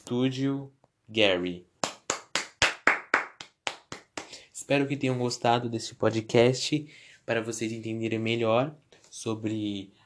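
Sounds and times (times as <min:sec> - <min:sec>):
speech: 0:00.1 - 0:01.7, 0:04.7 - 0:10.0
applause: 0:01.8 - 0:04.4.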